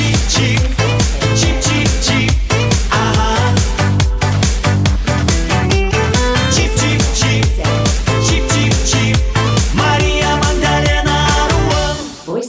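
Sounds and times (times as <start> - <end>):
Kazakh vocal singing: 0.0 - 4.4, 5.5 - 12.3.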